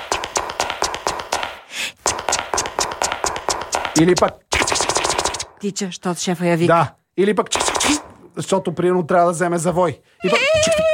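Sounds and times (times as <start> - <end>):
high heels clicking along an office corridor: 0.0 - 5.5
speech: 4.0 - 4.4, 5.6 - 10.9.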